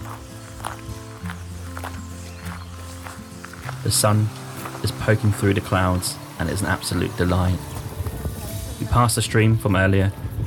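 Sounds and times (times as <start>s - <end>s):
footsteps on a post-lunch walk to a lake: 0.0s - 8.9s
speech: 3.8s - 7.7s, 8.9s - 10.3s.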